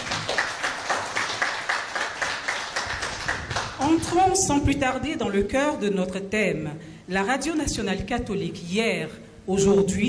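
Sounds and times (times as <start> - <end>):
audience clapping in unison at a Catholic radio event: 0.0 - 4.5
speech: 3.8 - 10.0.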